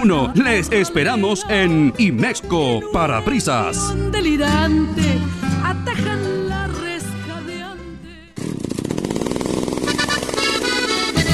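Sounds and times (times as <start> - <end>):
speech: 0.0 - 6.3
chainsaw engine snarling and revving: 8.4 - 11.3.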